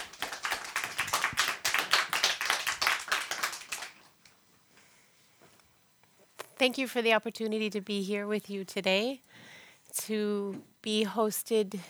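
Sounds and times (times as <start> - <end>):
audience clapping: 0.0 - 4.2
speech: 6.6 - 9.3, 10.0 - 11.8.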